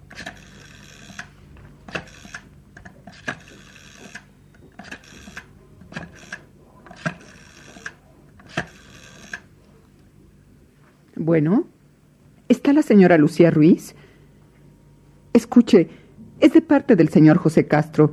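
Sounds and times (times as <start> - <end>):
telephone number being dialed: 0.1 - 9.5
speech: 11.3 - 11.7, 12.7 - 14.0, 15.4 - 18.1.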